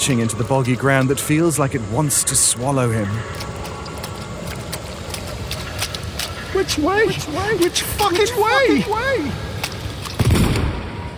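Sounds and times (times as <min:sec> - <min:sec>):
speech: 0:00.0 - 0:03.8, 0:06.6 - 0:09.5
gunshot crackling across a forest: 0:10.2 - 0:11.0.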